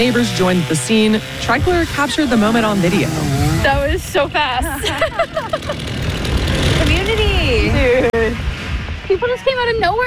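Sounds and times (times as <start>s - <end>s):
chainsaw bucking a fallen tree: 0.0s - 4.0s, 5.3s - 7.3s
speech: 0.0s - 8.4s, 9.1s - 10.0s
laughter: 4.6s - 6.8s.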